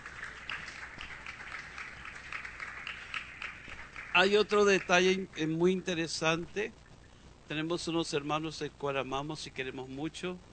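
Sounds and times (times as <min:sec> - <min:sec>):
audience applause: 0:00.0 - 0:05.7
speech: 0:04.2 - 0:06.8, 0:07.5 - 0:10.5.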